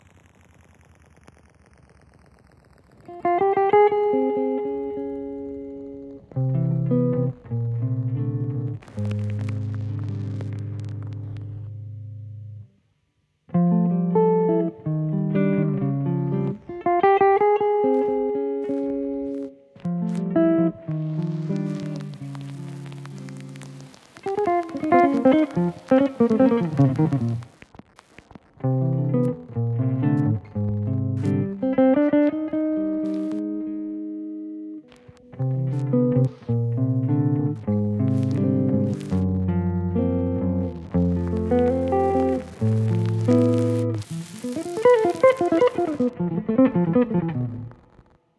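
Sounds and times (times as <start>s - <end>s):
white noise: 0.0s - 48.3s.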